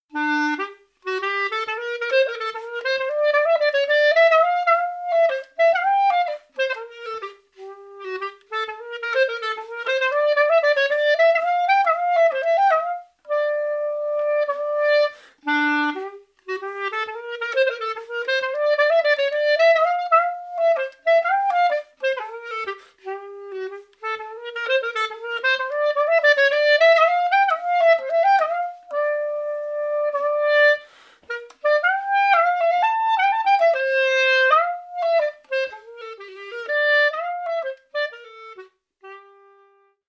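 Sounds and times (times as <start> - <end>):
clarinet polska tune: 0.1 - 40.0.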